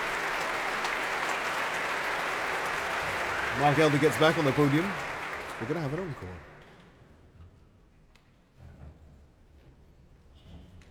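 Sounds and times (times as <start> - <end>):
large concert hall audience applause: 0.0 - 6.7
speech: 3.6 - 6.5.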